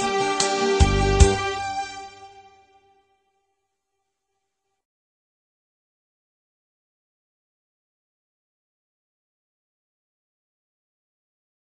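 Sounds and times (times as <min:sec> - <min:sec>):
Vietnamese instrumental folk music beat: 0:00.0 - 0:02.9.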